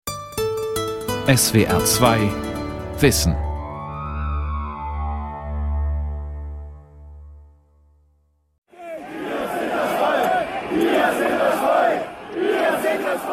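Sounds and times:
speech: 1.3s - 2.4s, 3.0s - 3.4s
low sustained electronic tone: 3.3s - 7.9s
crowd of protesters chanting a slogan: 8.7s - 13.3s.

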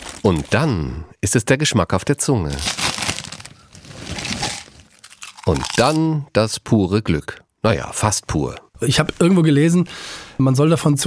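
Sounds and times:
speech: 0.2s - 2.9s, 5.5s - 11.0s
potato chips being chewed: 2.5s - 6.0s.

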